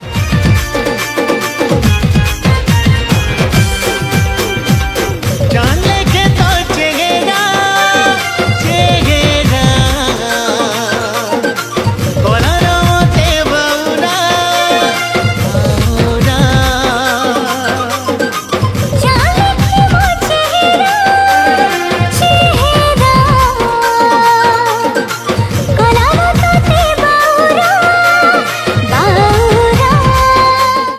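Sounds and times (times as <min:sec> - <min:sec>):
Sambalpuri song studio version: 0:00.0 - 0:30.9.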